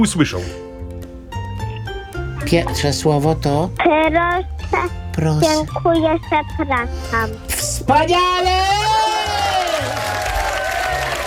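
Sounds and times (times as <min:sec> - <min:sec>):
speech: 0:00.0 - 0:00.6, 0:02.4 - 0:08.9
audience clapping and cheering: 0:08.4 - 0:11.2.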